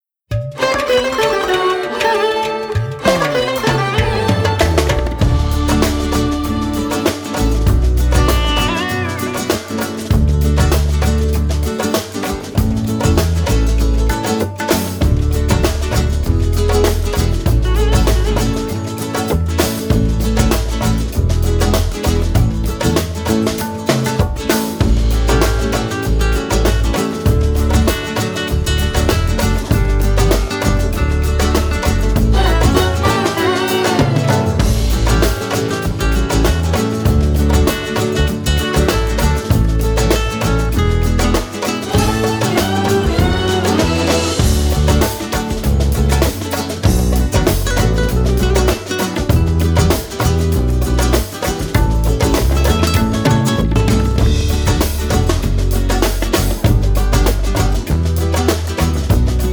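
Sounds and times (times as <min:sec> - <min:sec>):
instrumental national anthem: 0:00.3 - 0:59.5.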